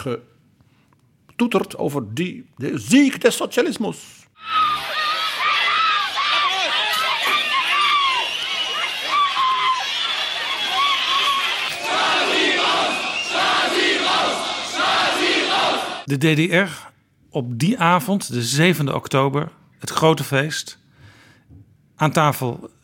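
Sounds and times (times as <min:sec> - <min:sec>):
speech: 0:00.0 - 0:00.4, 0:01.4 - 0:04.8, 0:16.1 - 0:20.8, 0:22.0 - 0:22.8
crowd of people screaming: 0:04.4 - 0:16.1.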